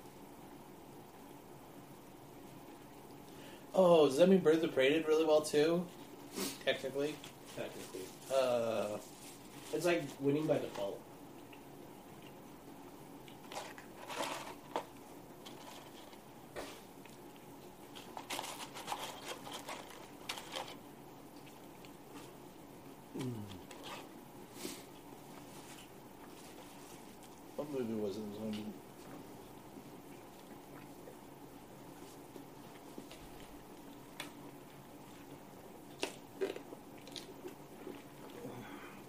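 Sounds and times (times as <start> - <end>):
chewing and crunching food: 2.3 - 3.4, 7.1 - 27.6, 28.4 - 39.0
speech: 3.8 - 11.1.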